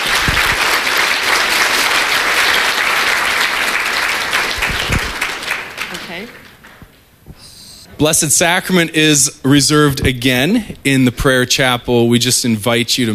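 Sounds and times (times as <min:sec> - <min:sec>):
large audience applauding: 0:00.0 - 0:07.0
speech: 0:06.2 - 0:06.4, 0:08.0 - 0:13.1.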